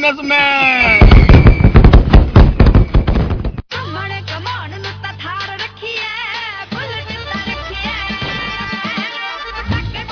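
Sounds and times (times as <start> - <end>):
Diwali firecrackers going off: 0.8 - 3.6.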